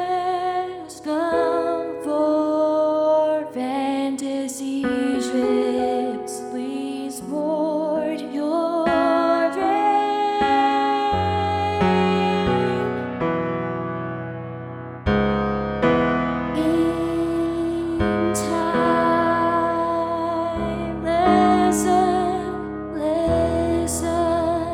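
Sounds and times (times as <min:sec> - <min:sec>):
piano in 17-tone equal temperament: 0:00.0 - 0:24.7.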